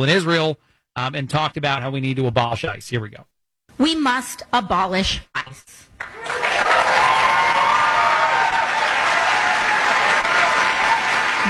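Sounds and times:
speech: 0.0 - 7.0
people applauding: 6.0 - 11.4.

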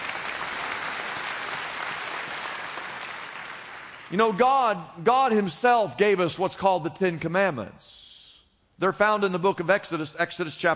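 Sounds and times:
audience applause: 0.0 - 4.1
speech: 4.1 - 8.0, 8.8 - 10.7.

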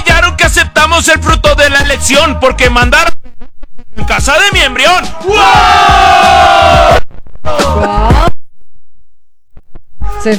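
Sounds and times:
speech: 0.5 - 3.2, 4.0 - 8.2
crowd cheering with whooping and yelling: 5.3 - 7.8.

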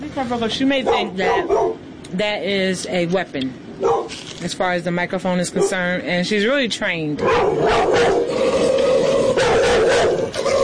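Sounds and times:
speech: 0.0 - 8.8
dog barking: 0.8 - 1.8, 3.8 - 4.1, 5.6 - 5.8, 7.2 - 8.3, 9.4 - 10.3
strained vocal tone: 7.5 - 10.6.

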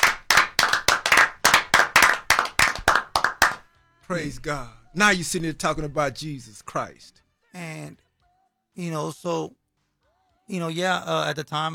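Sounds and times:
crowd round of applause: 0.0 - 3.6
speech: 4.1 - 8.0, 8.8 - 9.6, 10.5 - 11.7.

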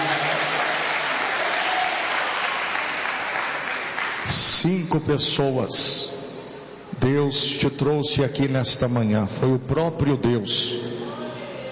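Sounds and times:
audience applause: 0.0 - 4.2
speech: 4.2 - 6.1, 7.0 - 11.0.

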